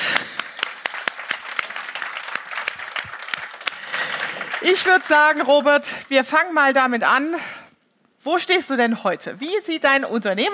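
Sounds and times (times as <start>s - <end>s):
sustained crowd applause: 0.0s - 5.4s
speech: 4.6s - 7.6s, 8.2s - 10.5s.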